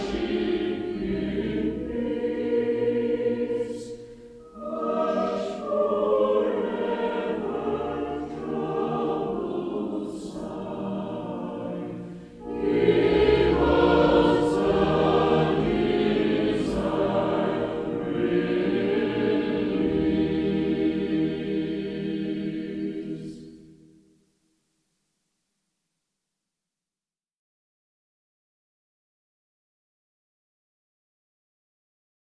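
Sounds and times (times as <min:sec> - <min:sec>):
choir singing a hymn: 0:00.0 - 0:23.9.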